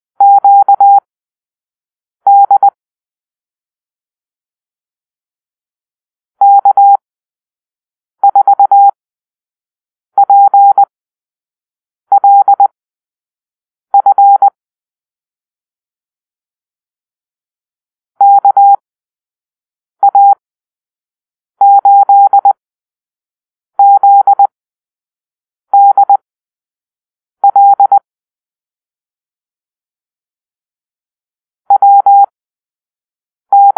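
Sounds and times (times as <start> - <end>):
morse code call-sign beeps: 0.2 - 1.0, 2.3 - 2.8, 6.4 - 7.0, 8.2 - 9.0, 10.2 - 10.9, 12.1 - 12.8, 14.0 - 14.6, 18.2 - 18.8, 20.0 - 20.4, 21.6 - 22.6, 23.8 - 24.5, 25.8 - 26.2, 27.4 - 28.0, 31.7 - 32.3, 33.5 - 33.7.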